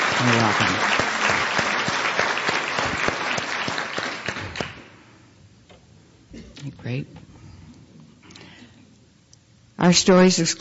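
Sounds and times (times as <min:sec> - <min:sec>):
applause for an organising committee at a weekend gathering: 0:00.0 - 0:05.0
speech: 0:00.2 - 0:01.0, 0:06.9 - 0:07.2, 0:09.9 - 0:10.5.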